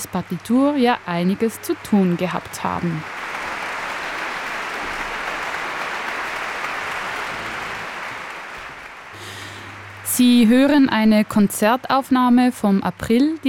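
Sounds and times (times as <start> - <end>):
concert audience applause in Lugano for an orchestra: 0.0 - 11.2
speech: 0.1 - 3.2, 10.2 - 13.4.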